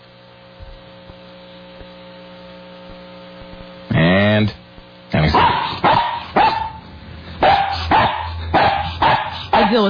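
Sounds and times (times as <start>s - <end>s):
speech: 4.4s - 4.6s
dog barking as a phone carrier alert tone: 5.2s - 6.8s, 7.4s - 9.8s.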